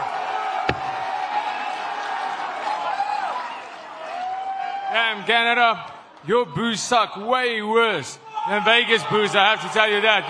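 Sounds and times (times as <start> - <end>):
crowd applauding and cheering: 0.0 - 5.3
sharp thump: 0.7 - 1.1
speech: 4.9 - 10.2.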